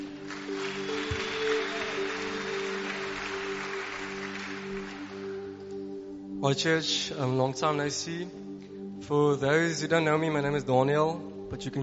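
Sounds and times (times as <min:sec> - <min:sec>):
church congregation applause welcoming a guest at a testimony, worship and baptism service: 0:00.0 - 0:05.6
speech: 0:06.4 - 0:08.4, 0:09.1 - 0:11.8.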